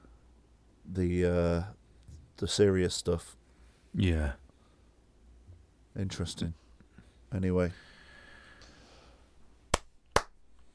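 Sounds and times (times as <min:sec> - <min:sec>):
speech: 0:00.9 - 0:01.8, 0:02.4 - 0:04.4, 0:06.0 - 0:06.6, 0:07.3 - 0:07.9
sync hand claps before editing: 0:09.7 - 0:10.4.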